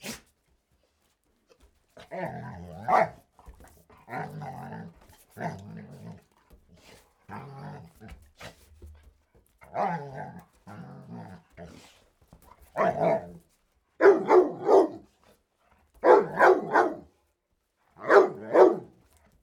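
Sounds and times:
dog barking: 2.9s - 3.2s, 12.8s - 13.4s, 14.0s - 15.0s, 16.0s - 17.1s, 18.0s - 18.9s.

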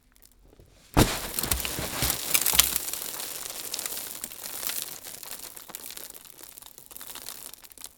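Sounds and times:
hit with dirt spraying: 1.0s - 2.9s.

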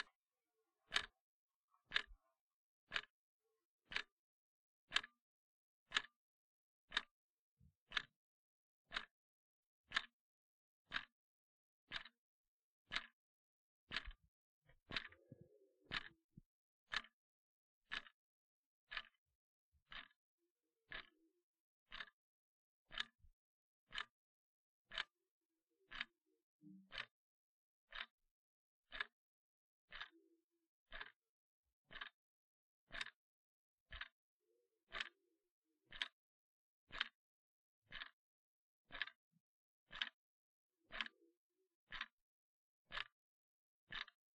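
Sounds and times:
clock ticking: 0.9s - 1.2s, 1.9s - 2.2s, 2.9s - 3.1s, 3.9s - 4.1s, 4.9s - 5.1s, 5.9s - 6.1s, 6.9s - 7.1s, 8.9s - 9.1s, 9.9s - 10.1s, 10.9s - 11.1s, 11.9s - 12.2s, 12.9s - 13.2s, 13.9s - 14.2s, 14.9s - 16.2s, 16.9s - 17.2s, 17.9s - 18.2s, 18.9s - 19.2s, 19.9s - 20.2s, 20.9s - 21.1s, 21.9s - 22.2s, 22.9s - 23.2s, 23.9s - 24.1s, 24.9s - 25.1s, 25.9s - 26.1s, 26.7s - 27.1s, 27.9s - 28.1s, 28.9s - 29.2s, 29.9s - 30.2s, 30.9s - 31.2s, 31.9s - 32.2s, 32.9s - 33.2s, 33.9s - 34.2s, 34.9s - 35.2s, 35.9s - 36.2s, 36.9s - 37.2s, 37.9s - 38.2s, 38.9s - 39.2s, 39.9s - 40.2s, 40.9s - 41.3s, 41.9s - 42.2s, 42.9s - 43.2s, 43.9s - 44.2s.

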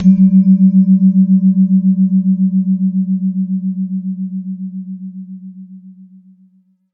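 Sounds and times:
Jegog bamboo gamelan: 0.0s - 3.0s.

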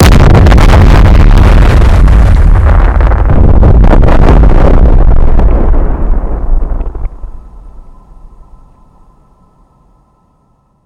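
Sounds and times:
crispy cartoon nuclear bomb explosion: 0.0s - 7.0s.

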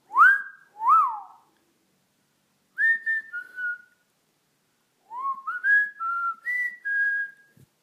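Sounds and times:
person whistling: 0.1s - 1.4s, 2.8s - 4.0s, 5.1s - 7.7s.

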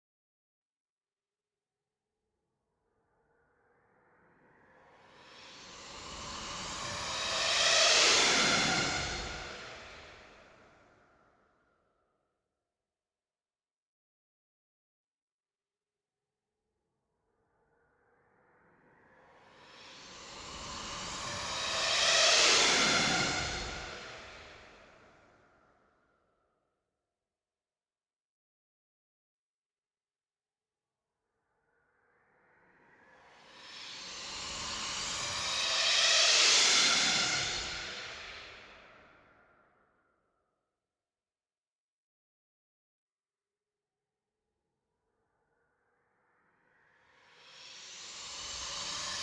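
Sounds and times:
Formula 1 car racing: 6.4s - 9.9s, 20.4s - 24.4s, 34.7s - 38.2s.

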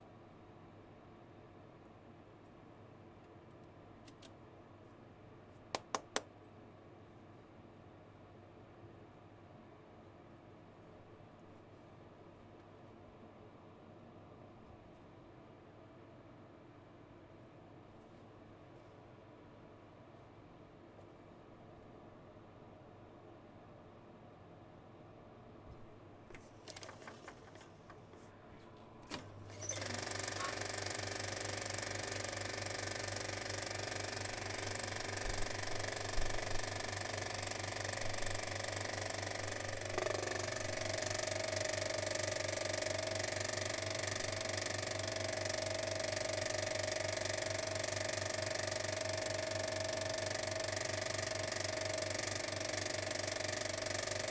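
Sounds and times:
Philips projector running: 26.3s - 54.2s.

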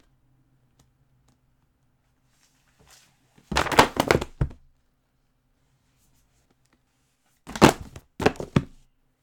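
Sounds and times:
books falling: 3.5s - 4.6s, 7.5s - 8.8s.

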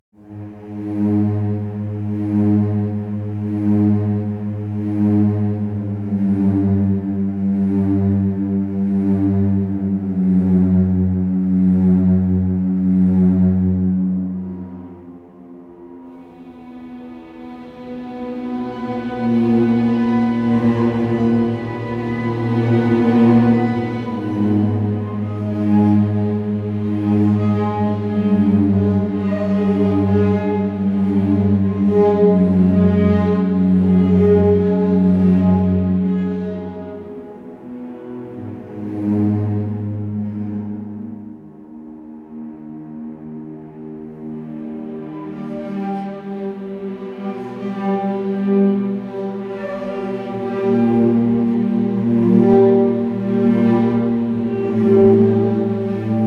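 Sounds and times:
sad orchestra strings drama music: 0.2s - 56.2s.

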